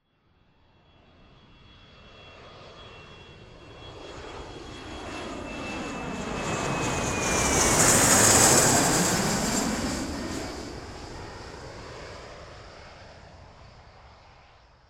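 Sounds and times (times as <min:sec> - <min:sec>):
jet aircraft: 0:00.0 - 0:14.8.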